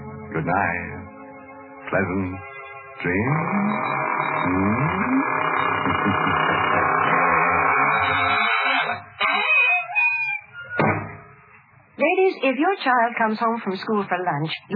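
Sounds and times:
speech: 0.4 - 1.1, 1.9 - 7.1, 12.0 - 14.7
squeaking door closing: 3.2 - 11.4.

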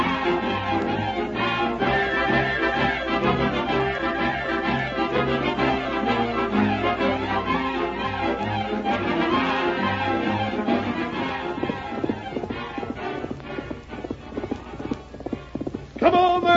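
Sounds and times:
horse hooves galloping: 0.0 - 16.5.

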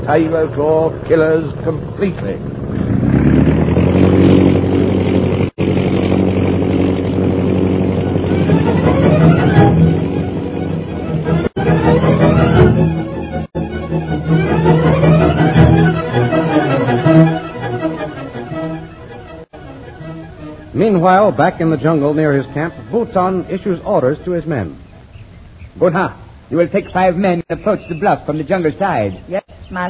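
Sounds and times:
speech: 0.0 - 2.6, 21.0 - 24.8, 25.8 - 29.8
airplane engines revving as planes take off: 0.0 - 29.3.

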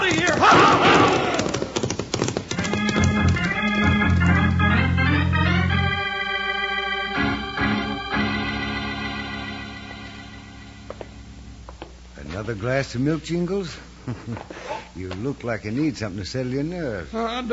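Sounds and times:
horses galloping: 0.0 - 4.8
loud sustained music: 3.9 - 11.4
speech: 12.5 - 17.5.

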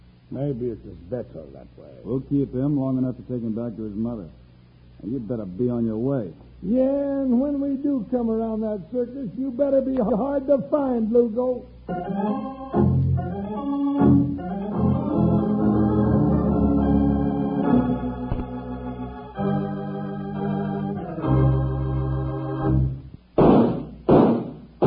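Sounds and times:
speech: 0.3 - 4.4, 5.0 - 13.0
brassy full-bodied music: 11.9 - 23.0
gunshots: 23.4 - 24.8.

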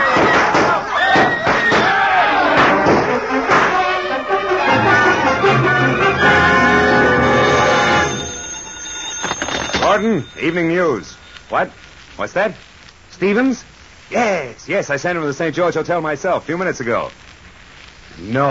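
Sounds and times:
gunshot sound effect in a radio drama: 0.0 - 3.8
crowd noise in a hotel lobby in a radio drama: 0.0 - 8.5
speech: 10.0 - 17.3, 18.2 - 18.4.

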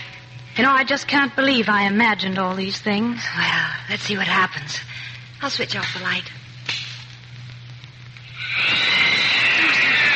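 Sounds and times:
speech: 0.6 - 6.4
alley cat yowling: 8.4 - 10.1.

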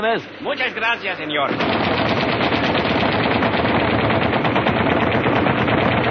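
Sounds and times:
speech: 0.0 - 2.3
automatic gunfire from a Zurich 86 rifle in a shopping-center car park: 1.5 - 6.0.

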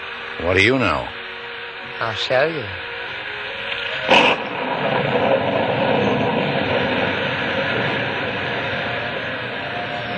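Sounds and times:
speech: 0.4 - 1.2, 1.9 - 2.9
pouring rain: 3.8 - 10.1.

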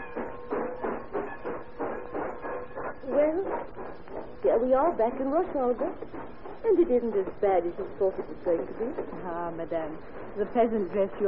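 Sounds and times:
train speeding toward St. Petersburg, radio drama sound effect: 0.0 - 11.2
speech: 3.1 - 11.2.

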